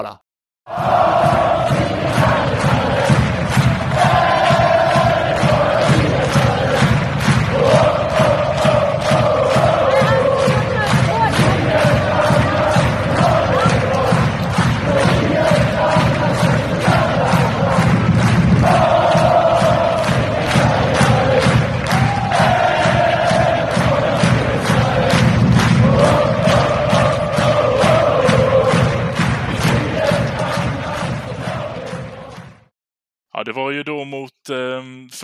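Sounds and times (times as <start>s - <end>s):
speech: 0.0s - 2.0s, 33.5s - 35.2s
football supporters chanting in unison: 0.7s - 32.7s.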